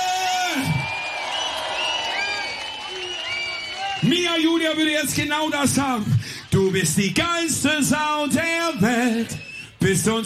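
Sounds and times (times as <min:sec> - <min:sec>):
crowd cheering: 0:00.0 - 0:09.6
crowd applause: 0:00.6 - 0:07.6
speech: 0:04.0 - 0:10.2.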